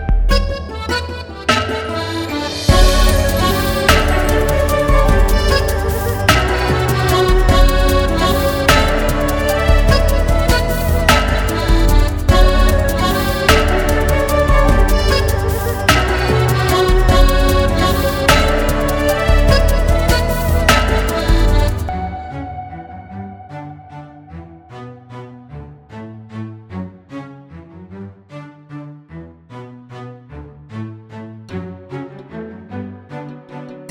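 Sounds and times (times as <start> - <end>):
accordion: 0.3 - 22.6.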